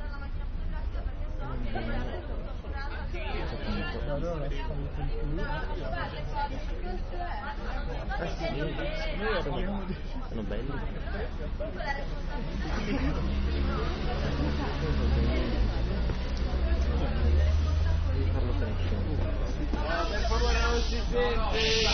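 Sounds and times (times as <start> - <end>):
crowd chatter at an assembly: 0.0 - 21.9
speech: 4.1 - 15.8, 18.2 - 21.9.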